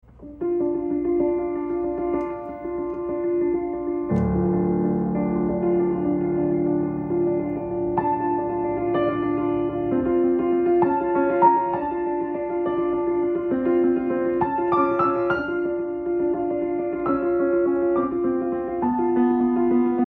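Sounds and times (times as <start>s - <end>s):
piano: 0.0s - 20.0s.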